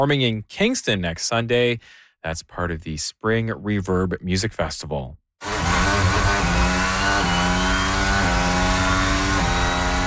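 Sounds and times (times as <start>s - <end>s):
speech: 0.0s - 5.2s
Formula One race car engine revving through gear changes: 5.4s - 10.0s.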